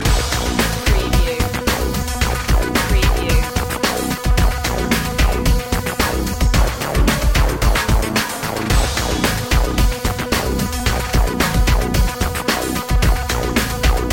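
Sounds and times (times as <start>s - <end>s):
underscore music: 0.0s - 14.1s.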